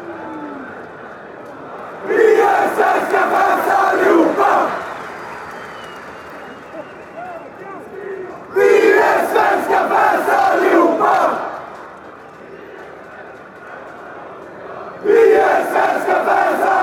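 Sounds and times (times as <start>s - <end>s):
Swedish fans chanting: 1.6s - 4.9s, 7.8s - 16.8s.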